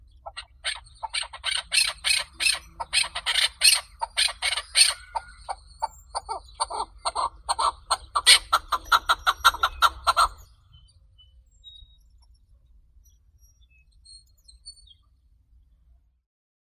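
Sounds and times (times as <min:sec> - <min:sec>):
chukar Alectoris chukar calling: 0:00.2 - 0:11.1.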